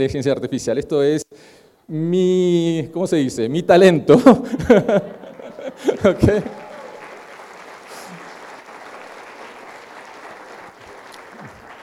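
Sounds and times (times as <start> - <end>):
speech: 0.0 - 5.2, 5.8 - 6.6
laughter: 4.2 - 7.0
audience applause: 5.5 - 11.8.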